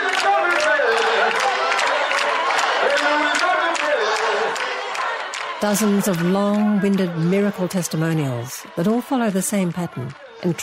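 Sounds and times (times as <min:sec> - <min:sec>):
hand claps: 0:00.0 - 0:07.3, 0:09.9 - 0:10.4
large church crowd singing in an arena: 0:00.0 - 0:10.6
scattered cheers: 0:00.0 - 0:10.6
speech: 0:05.6 - 0:10.6.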